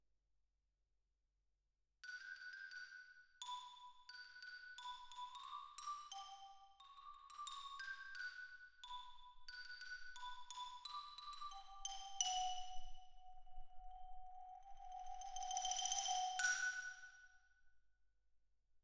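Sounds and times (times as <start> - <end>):
xylophone: 2.1 - 13.2, 14.8 - 17.1.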